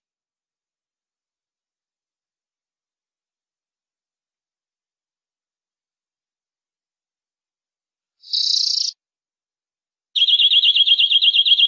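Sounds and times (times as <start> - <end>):
canary trilling: 8.2 - 9.0, 10.2 - 11.6.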